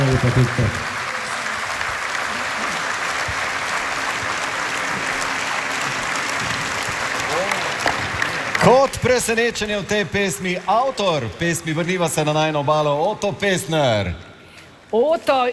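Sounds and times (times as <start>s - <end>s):
audience applause: 0.0s - 13.2s
speech: 0.2s - 1.0s, 8.6s - 14.3s, 14.9s - 15.5s.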